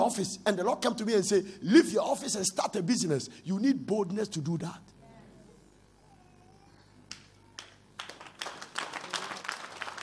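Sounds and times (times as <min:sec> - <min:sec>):
speech: 0:00.1 - 0:05.0
audience clapping: 0:07.1 - 0:10.0.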